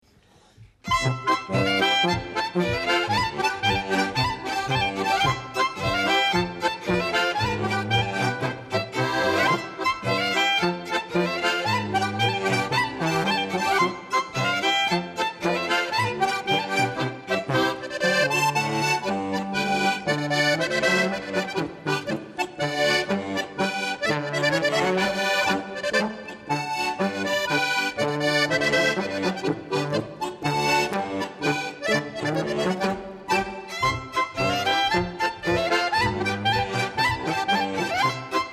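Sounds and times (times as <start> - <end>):
polka music: 0.8 - 38.5.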